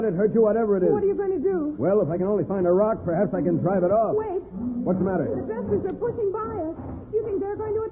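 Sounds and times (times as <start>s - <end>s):
speech: 0.1s - 7.7s
animal growling: 4.5s - 6.0s.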